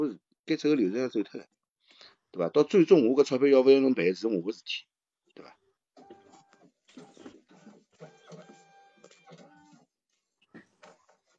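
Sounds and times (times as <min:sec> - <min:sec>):
speech: 0:00.0 - 0:01.6, 0:02.3 - 0:05.6
printer whirring: 0:06.0 - 0:09.9.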